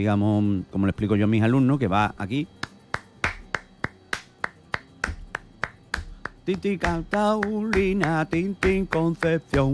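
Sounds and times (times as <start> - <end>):
speech: 0.0 - 2.6, 6.4 - 9.7
hand claps beating a bulería rhythm in three: 2.5 - 9.7.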